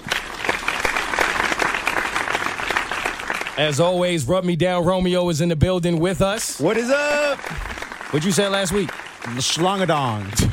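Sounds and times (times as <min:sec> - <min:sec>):
applause from a group of people: 0:00.0 - 0:04.2, 0:06.3 - 0:10.5
speech: 0:03.6 - 0:10.5.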